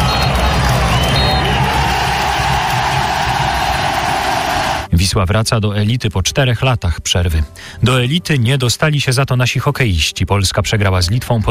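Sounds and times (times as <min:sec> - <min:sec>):
stadium crowd cheering after final whistle: 0:00.0 - 0:04.9
speech: 0:05.2 - 0:11.4.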